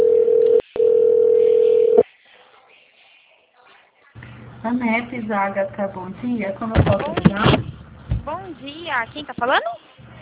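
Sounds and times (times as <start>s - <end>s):
telephone line beep while a call to a company extension connects: 0.0s - 2.0s
speech: 4.6s - 7.7s, 8.3s - 9.8s.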